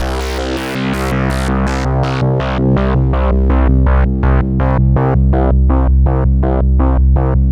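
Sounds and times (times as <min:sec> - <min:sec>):
Memorymoog pulsing Moog synth bass: 0:00.0 - 0:07.4.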